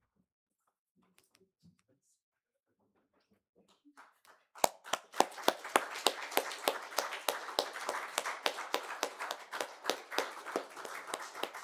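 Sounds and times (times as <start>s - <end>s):
audience applause: 4.6s - 11.6s.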